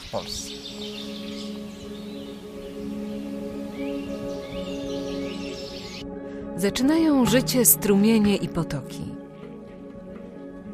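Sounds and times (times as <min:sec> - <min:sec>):
morning birdsong with chaffinch and starlings singing: 0:00.0 - 0:06.6
speech: 0:00.1 - 0:02.0, 0:06.6 - 0:09.2.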